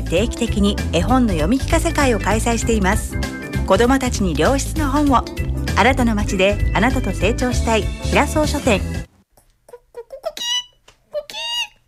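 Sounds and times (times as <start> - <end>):
speech: 0.1 - 9.0
rooster clucking: 9.7 - 11.8.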